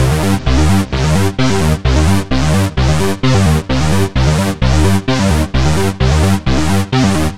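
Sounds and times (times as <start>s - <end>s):
trance synth loop: 0.0s - 7.3s.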